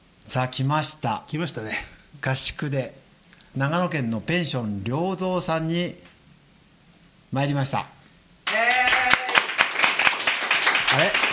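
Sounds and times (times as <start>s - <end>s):
speech: 0.3s - 3.0s, 3.6s - 6.1s, 7.3s - 8.0s, 11.0s - 11.2s
live audience clapping at a public recording at a Nagano guesthouse retreat: 8.4s - 11.3s.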